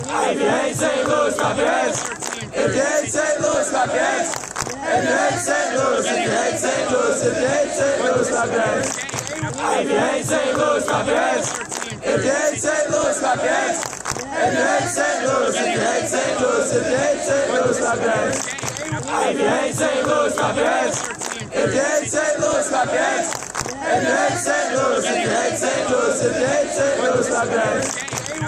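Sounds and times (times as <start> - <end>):
hands clapping: 0.0 - 6.8, 7.4 - 16.3, 17.0 - 28.4.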